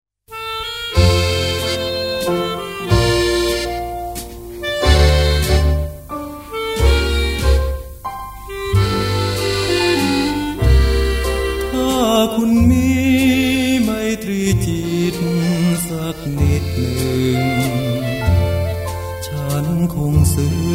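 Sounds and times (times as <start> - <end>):
waltz music: 0.3 - 20.7.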